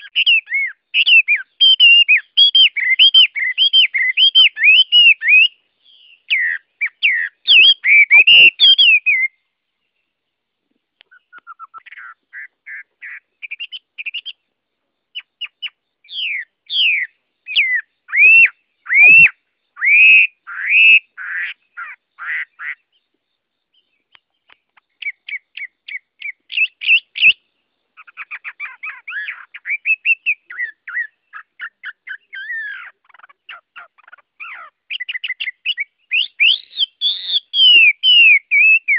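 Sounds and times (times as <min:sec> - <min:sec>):
Chinese hwamei singing: 0:00.0 - 0:10.2, 0:11.0 - 0:14.5, 0:15.1 - 0:38.9.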